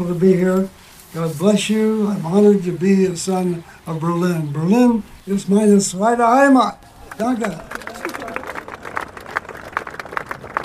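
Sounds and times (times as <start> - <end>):
speech: 0.0 - 7.8
crowd giving standing ovation: 6.8 - 10.6.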